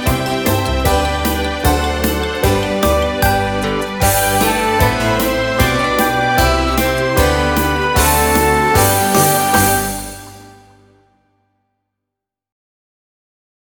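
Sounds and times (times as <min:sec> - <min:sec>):
recorder playing a German children's folk tune: 0:00.1 - 0:10.8.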